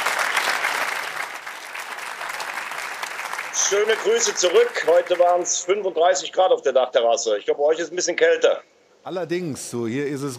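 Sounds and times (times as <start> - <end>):
audience applause: 0.0 - 5.6
speech: 3.6 - 10.3.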